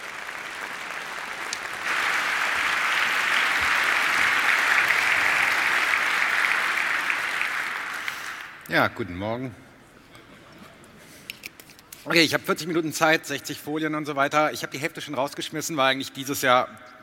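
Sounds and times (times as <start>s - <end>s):
audience applause: 0.0s - 8.7s
speech: 8.7s - 9.6s, 12.0s - 17.0s.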